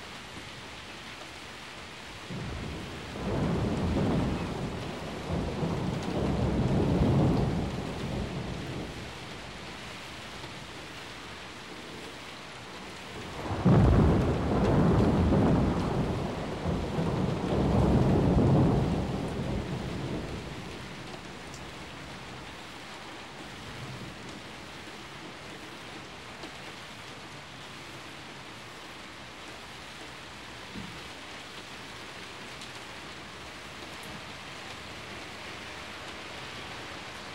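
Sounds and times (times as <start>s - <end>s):
heavy rain: 0.0s - 37.3s
rolling thunder: 2.3s - 9.3s, 13.2s - 22.3s.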